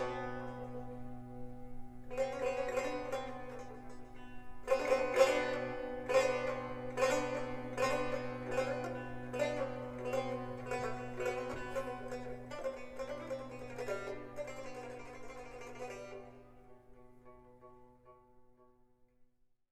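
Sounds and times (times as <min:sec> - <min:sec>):
tar: 0:00.0 - 0:16.5.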